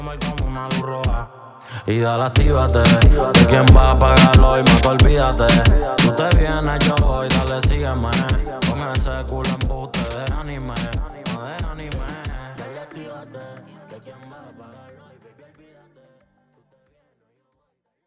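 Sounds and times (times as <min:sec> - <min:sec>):
intro music at 91 bpm: 0:02.4 - 0:12.6.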